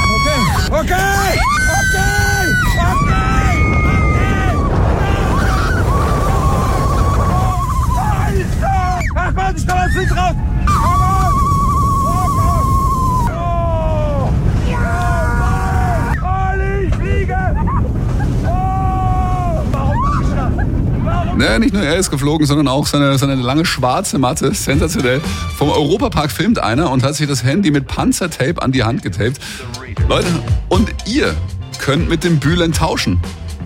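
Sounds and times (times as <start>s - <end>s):
roller coaster riders screaming and whooping: 0.0s - 21.4s
roller coaster wind and track noise at high speed: 0.0s - 26.7s
speech: 21.6s - 33.4s.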